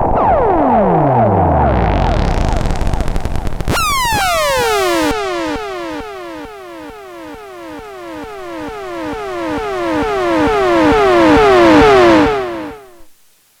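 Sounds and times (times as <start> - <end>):
Korg Monotron Delay synthesizer: 0.2 - 13.1.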